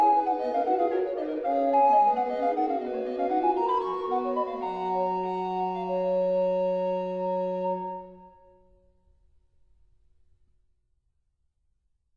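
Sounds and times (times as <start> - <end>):
recorder quartet playing: 0.0 - 8.2.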